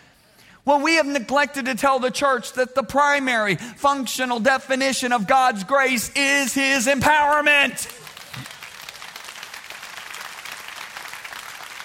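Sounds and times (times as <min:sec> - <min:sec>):
speech: 0:00.6 - 0:08.0
audience applause: 0:07.9 - 0:11.8.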